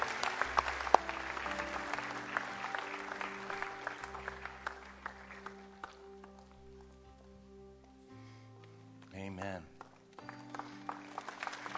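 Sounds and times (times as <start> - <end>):
audience applause: 0.0 - 6.4, 9.8 - 11.7.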